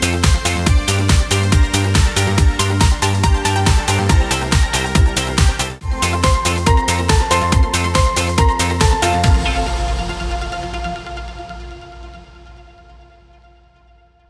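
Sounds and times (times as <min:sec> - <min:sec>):
karaoke singing: 0:00.0 - 0:10.5.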